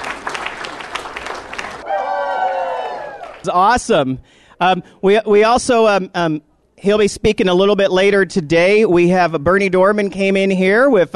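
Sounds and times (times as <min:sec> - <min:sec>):
audience applause: 0:00.0 - 0:03.5
speech: 0:03.4 - 0:11.1.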